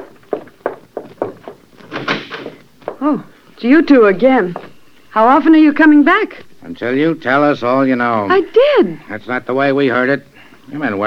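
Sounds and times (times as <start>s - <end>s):
door being opened: 1.3s - 2.6s
speech: 3.0s - 4.6s, 5.2s - 11.0s.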